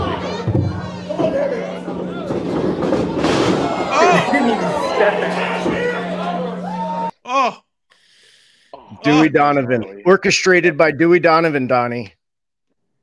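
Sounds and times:
wrestling crowd chattering and shouting: 0.0 - 7.1
laughter: 3.5 - 7.1, 8.8 - 10.2
speech: 5.0 - 5.7, 9.0 - 12.2.

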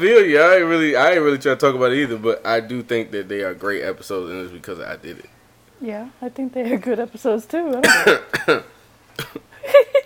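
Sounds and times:
speech: 0.0 - 10.0
person coughing: 7.8 - 9.5.

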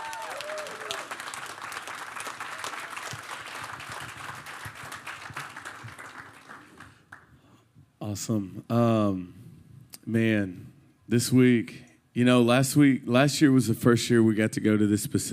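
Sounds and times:
audience applause: 0.0 - 7.2
speech: 8.1 - 9.4, 10.1 - 15.3.

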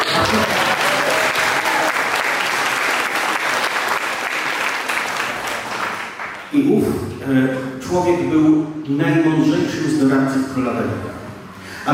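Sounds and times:
audience applause: 0.0 - 6.5
speech: 6.6 - 11.1.

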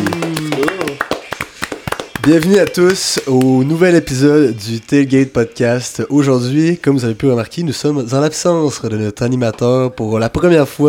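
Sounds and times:
applause: 0.0 - 3.5
speech: 2.2 - 10.8.

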